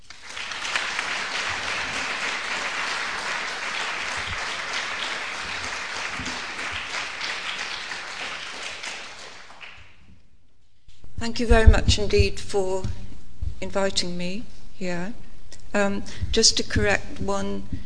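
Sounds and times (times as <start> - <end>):
lecture audience applauding to welcome a speaker: 0.0 - 10.0
speech: 11.2 - 13.0, 13.6 - 17.8.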